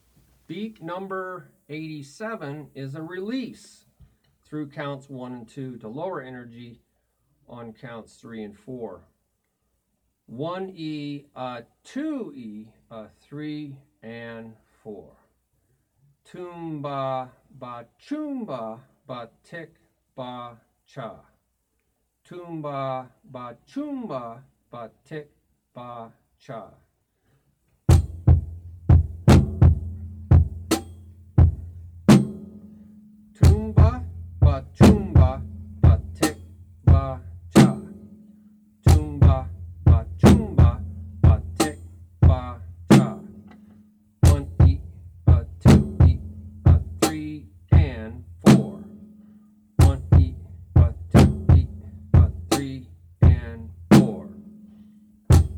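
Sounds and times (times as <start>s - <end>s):
drum beat: 27.9s - 43.6s, 44.2s - 49.1s, 49.8s - 54.5s, 55.3s - 55.5s.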